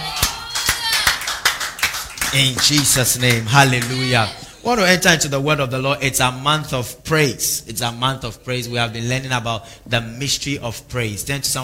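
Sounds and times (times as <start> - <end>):
audience clapping: 0.0 - 4.3
speech: 2.3 - 11.6.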